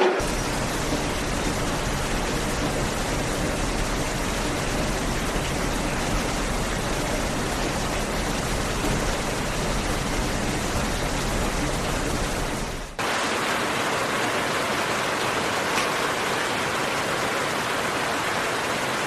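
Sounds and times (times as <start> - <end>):
deep rumble: 0.2 - 13.0
rain hissing: 0.2 - 19.0.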